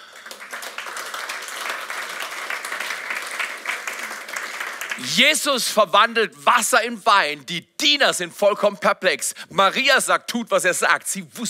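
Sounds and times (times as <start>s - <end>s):
audience applause: 0.0s - 5.1s
speech: 5.0s - 11.4s.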